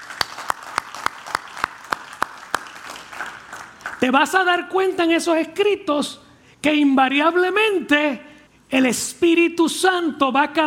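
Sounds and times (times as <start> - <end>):
audience applause: 0.0 - 4.2
speech: 4.0 - 10.6.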